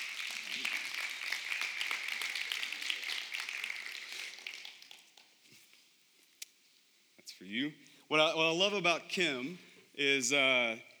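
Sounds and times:
church congregation applauding: 0:00.0 - 0:05.4
speech: 0:07.4 - 0:10.9.

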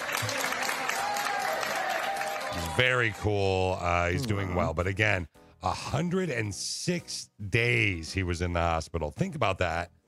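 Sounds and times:
nurses and doctors clapping: 0:00.0 - 0:03.5
speech: 0:02.6 - 0:10.0.

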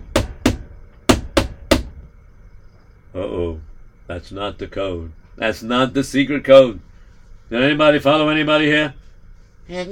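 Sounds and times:
heavy pounding on a door: 0:00.0 - 0:02.1
speech: 0:03.1 - 0:06.9, 0:07.5 - 0:09.0, 0:09.7 - 0:09.9.

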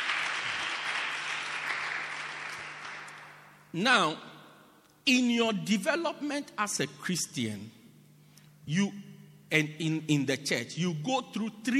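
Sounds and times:
audience clapping: 0:00.0 - 0:03.6
speech: 0:03.7 - 0:04.3, 0:05.0 - 0:07.8, 0:08.7 - 0:11.7.

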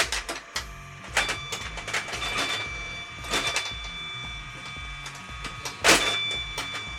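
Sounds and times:
pinball machine launching its ball: 0:00.0 - 0:03.8, 0:05.1 - 0:06.8
pinball machine buzzing: 0:00.0 - 0:06.9
pinball machine rattling and clattering: 0:00.0 - 0:06.9.

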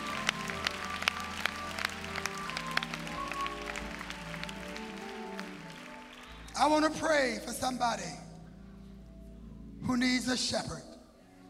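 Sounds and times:
audience clapping hands: 0:00.0 - 0:07.3
speech: 0:06.6 - 0:08.2, 0:09.9 - 0:10.9.

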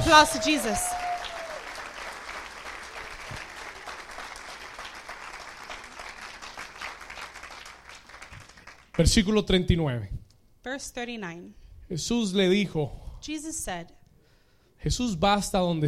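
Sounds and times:
audience applauding: 0:00.0 - 0:09.2
speech: 0:00.1 - 0:00.9, 0:09.0 - 0:14.0, 0:14.8 - 0:15.8.

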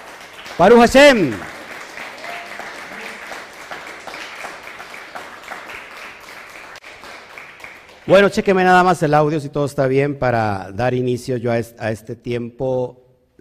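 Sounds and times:
audience applause: 0:00.0 - 0:08.3
speech: 0:00.6 - 0:01.5, 0:08.1 - 0:13.3.

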